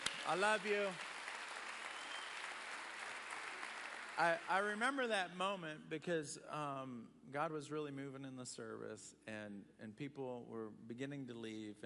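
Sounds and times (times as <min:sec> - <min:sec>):
audience applause for the sound engineer: 0:00.0 - 0:04.9
speech: 0:00.3 - 0:01.1, 0:04.2 - 0:11.8.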